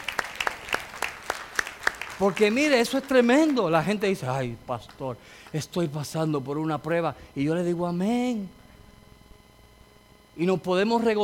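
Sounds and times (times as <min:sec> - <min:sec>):
applause: 0:00.0 - 0:03.8
speech: 0:02.2 - 0:08.6, 0:10.4 - 0:11.2.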